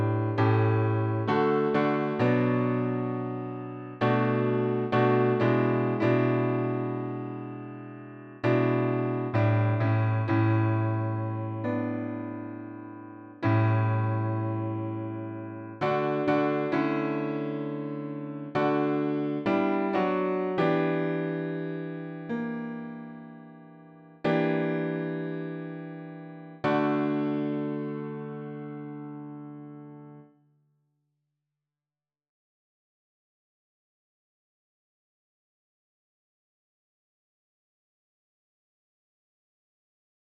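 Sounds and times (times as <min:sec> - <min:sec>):
piano: 0:00.0 - 0:30.4.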